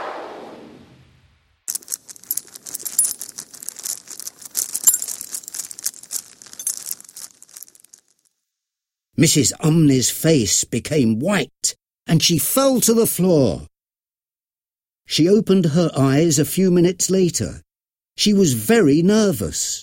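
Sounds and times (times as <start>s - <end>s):
metal chains clanking: 1.7s - 8.2s
speech: 9.2s - 13.7s, 15.1s - 19.8s.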